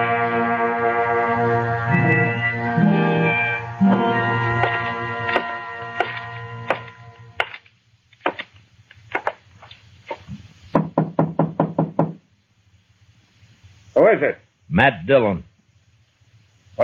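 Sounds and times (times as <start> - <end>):
sustained musical tone: 0.0 - 7.4
knocking on a wooden door: 10.8 - 12.2
speech: 14.2 - 15.5.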